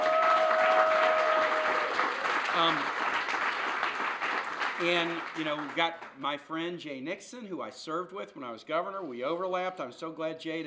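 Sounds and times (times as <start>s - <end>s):
audience applause: 0.0s - 5.9s
speech: 2.6s - 3.0s, 4.8s - 10.6s.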